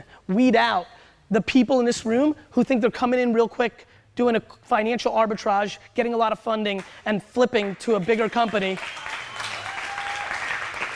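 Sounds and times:
speech: 0:00.3 - 0:09.2
audience clapping: 0:07.6 - 0:10.9.

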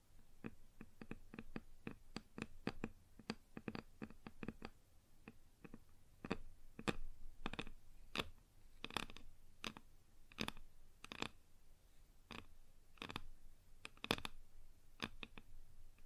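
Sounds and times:
fingers tapping on a wooden surface: 0:00.4 - 0:09.8, 0:10.4 - 0:11.3.

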